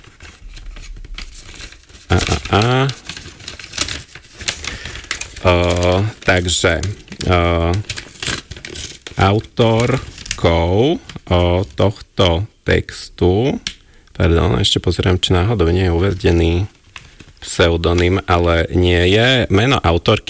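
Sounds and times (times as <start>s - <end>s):
envelope being torn open: 0.0s - 11.8s
speech: 2.5s - 3.0s, 5.4s - 8.0s, 9.2s - 16.8s, 17.4s - 20.2s.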